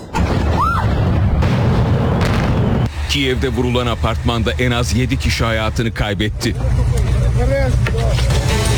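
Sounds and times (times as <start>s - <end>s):
missile depot explosion in Kyiv, Ukraine: 0.0s - 2.9s
speech: 3.1s - 8.6s.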